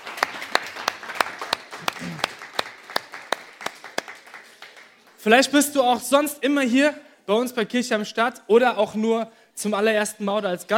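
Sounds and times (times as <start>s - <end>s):
audience applauding: 0.0s - 5.2s
speech: 5.2s - 10.7s.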